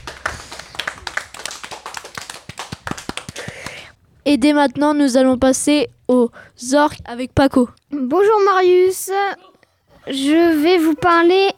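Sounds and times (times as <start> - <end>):
audience applause: 0.0 - 3.5
speech: 4.3 - 11.5.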